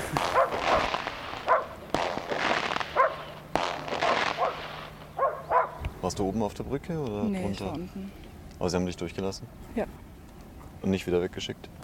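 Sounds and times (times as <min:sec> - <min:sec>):
dogs barking: 0:00.2 - 0:01.9, 0:02.8 - 0:05.9
speech: 0:06.1 - 0:10.0, 0:10.8 - 0:11.8.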